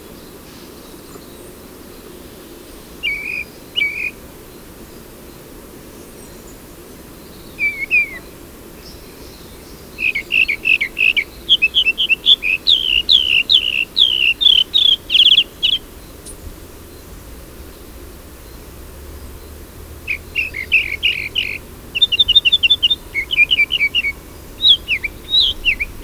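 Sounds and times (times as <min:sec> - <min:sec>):
nightingale singing: 0:02.8 - 0:04.2, 0:06.2 - 0:26.0.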